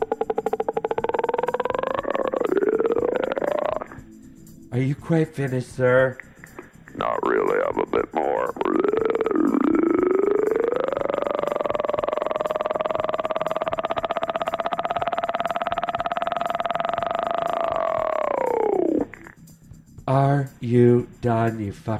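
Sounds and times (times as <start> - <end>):
voice imitating helicopter noises: 0.0 - 4.0, 7.0 - 19.3
speech: 4.7 - 6.3, 7.0 - 9.1, 20.6 - 21.9.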